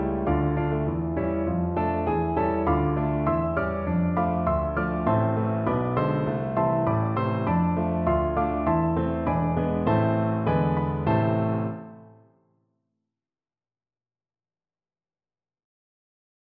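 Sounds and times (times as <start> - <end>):
four-hands piano duet: 0.0 - 12.3.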